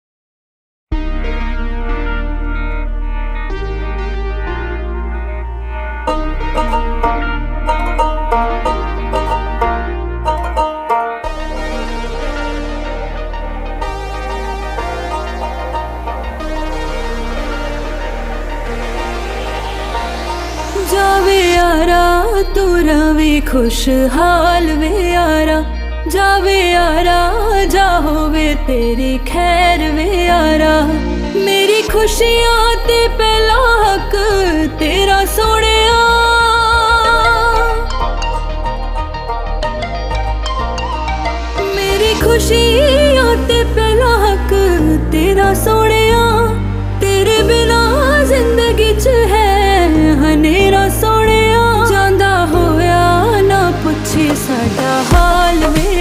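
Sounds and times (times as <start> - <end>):
sad song: 1.0 - 55.9.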